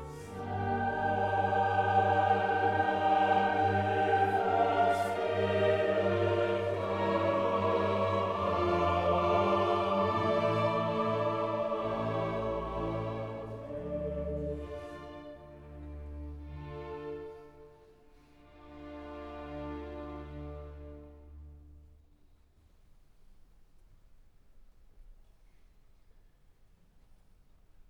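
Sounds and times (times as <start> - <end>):
philharmonic orchestra playing a requiem in D minor: 0.0 - 21.9.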